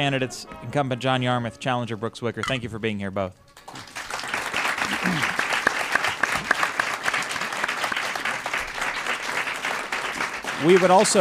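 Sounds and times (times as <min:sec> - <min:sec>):
speech: 0:00.0 - 0:03.9, 0:10.6 - 0:11.1
studio audience applauding after a political debate: 0:03.6 - 0:11.1.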